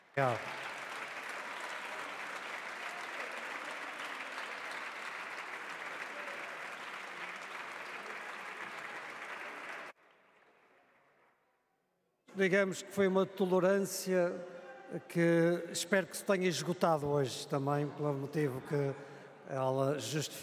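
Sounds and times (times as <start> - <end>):
applause of the whole Câmara: 0.0 - 10.7
speech: 0.2 - 0.5, 12.4 - 20.4.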